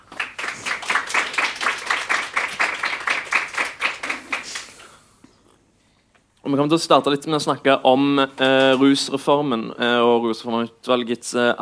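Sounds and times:
audience applause: 0.0s - 4.7s
speech: 6.5s - 11.6s.

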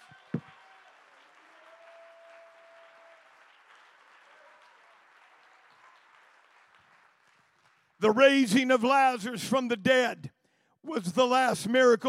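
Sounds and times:
audience clapping hands: 0.0s - 8.8s
speech: 8.0s - 12.0s.

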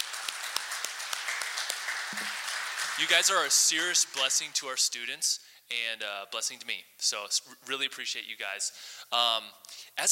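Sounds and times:
audience applause: 0.0s - 4.0s
speech: 3.0s - 10.1s.

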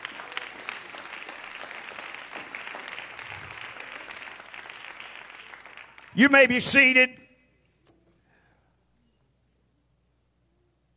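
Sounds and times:
crowd clapping: 0.0s - 7.2s
speech: 6.2s - 7.2s.

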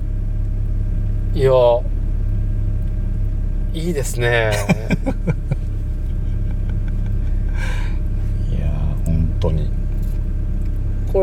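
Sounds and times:
car engine idling, just started at a shop: 0.0s - 11.2s
speech: 1.4s - 1.9s, 3.7s - 5.6s
laughter: 4.4s - 8.0s
breathy hiss: 7.4s - 8.3s.

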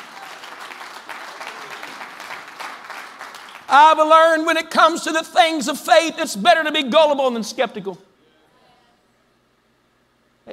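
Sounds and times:
audience applause: 0.0s - 3.7s
speech: 3.7s - 8.1s.

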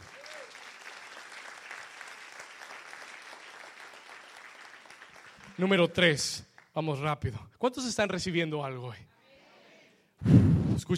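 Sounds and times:
audience applause: 0.0s - 5.8s
speech: 5.6s - 9.1s, 10.2s - 10.9s.

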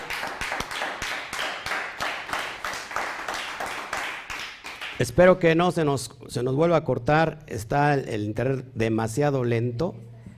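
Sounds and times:
applause from a group: 0.0s - 5.2s
speech: 5.0s - 10.1s.

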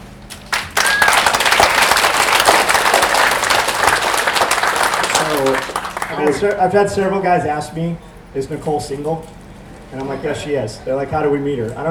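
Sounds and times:
crowd applause: 0.4s - 6.8s
voices calling out: 0.8s - 11.9s
speech: 5.4s - 11.9s.

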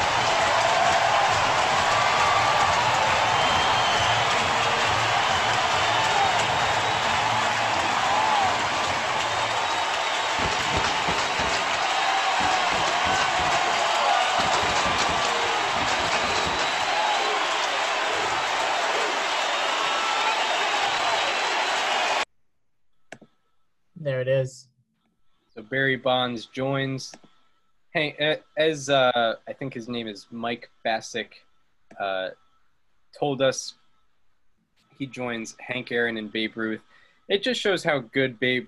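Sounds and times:
baseball stadium crowd cheering: 0.0s - 22.3s
speech: 25.7s - 27.3s, 28.0s - 32.4s, 33.2s - 33.8s, 35.0s - 38.6s.

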